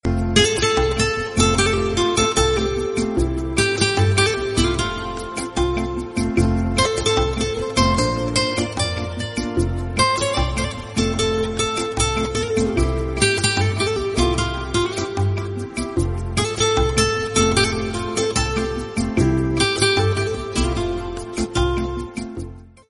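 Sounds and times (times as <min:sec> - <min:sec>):
instrumental background music theme: 0:00.0 - 0:22.8.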